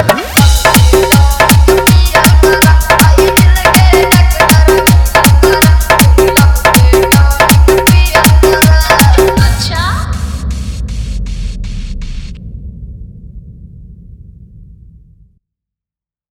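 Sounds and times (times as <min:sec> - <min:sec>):
hard bass dance music mix: 0:00.2 - 0:12.4.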